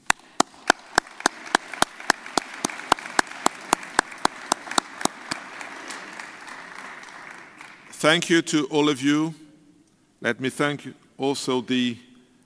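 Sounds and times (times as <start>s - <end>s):
audience applause: 0.2s - 8.2s
speech: 8.0s - 9.4s, 10.2s - 12.1s.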